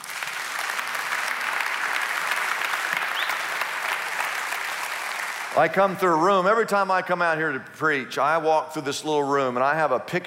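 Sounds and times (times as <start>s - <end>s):
applause: 0.0s - 5.8s
speech: 5.6s - 10.2s.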